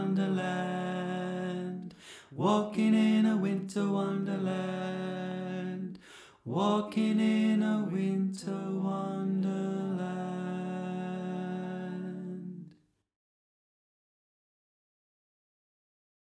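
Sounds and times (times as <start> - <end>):
tenor singing: 0.0 - 12.7.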